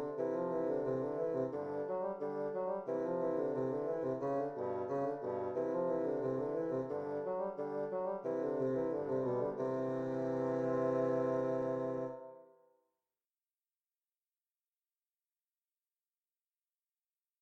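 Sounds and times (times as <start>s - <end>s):
bassoon duet: 0.0s - 12.5s.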